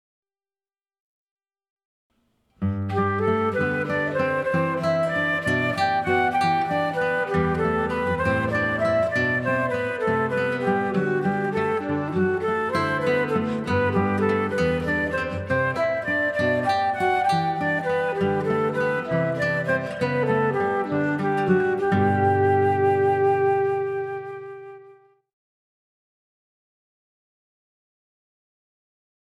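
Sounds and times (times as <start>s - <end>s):
guitar: 2.5s - 25.1s.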